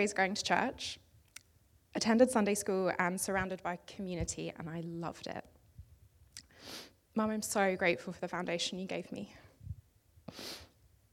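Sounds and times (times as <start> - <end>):
speech: 0.0 - 1.0, 2.0 - 5.5, 6.6 - 9.4, 10.3 - 10.7
man with the sniffles sniffing: 6.5 - 7.0, 10.3 - 10.8.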